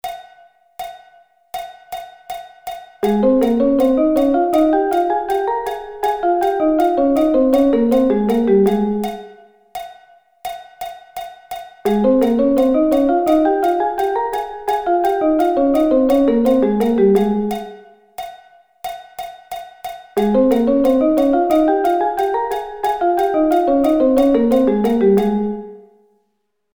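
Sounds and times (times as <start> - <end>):
A-flat thirds: 3.0 - 9.4, 11.9 - 17.8, 20.2 - 25.9.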